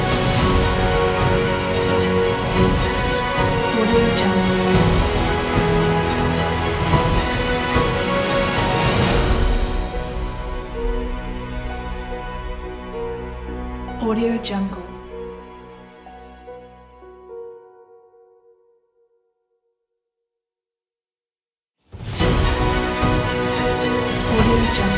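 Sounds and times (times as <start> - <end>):
uplifting cinematic happy epic music: 0.0 - 16.6, 22.0 - 24.9.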